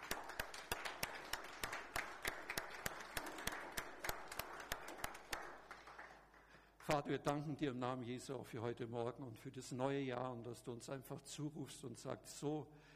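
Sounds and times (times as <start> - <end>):
audience applause: 0.0 - 6.5
speech: 6.9 - 12.9.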